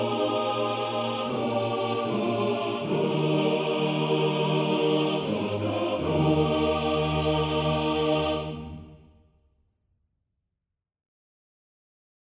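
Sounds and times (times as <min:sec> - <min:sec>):
male choir singing: 0:00.0 - 0:09.0.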